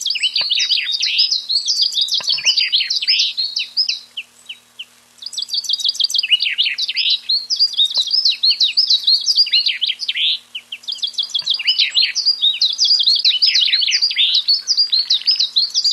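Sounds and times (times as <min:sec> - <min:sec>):
common chaffinch Fringilla coelebs song: 0:00.0 - 0:15.9.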